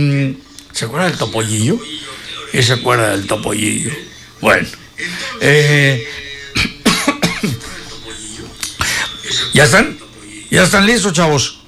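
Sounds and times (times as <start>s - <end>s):
speech: 0.0s - 6.7s, 9.6s - 11.6s
laughter: 1.3s - 11.0s
rough hoarse coughs: 4.8s - 10.1s.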